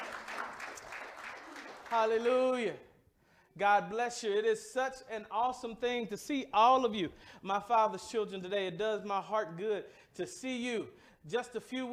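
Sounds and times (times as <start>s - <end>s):
audience clapping hands: 0.0s - 2.6s
speech: 1.9s - 2.9s, 3.6s - 11.9s.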